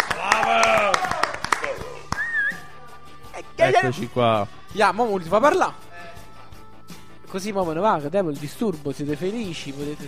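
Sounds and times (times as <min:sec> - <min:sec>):
live audience clapping: 0:00.0 - 0:02.7
people cheering: 0:00.0 - 0:02.8
rising whistle-like tone: 0:02.2 - 0:02.8
speech: 0:03.7 - 0:05.8, 0:07.3 - 0:10.0.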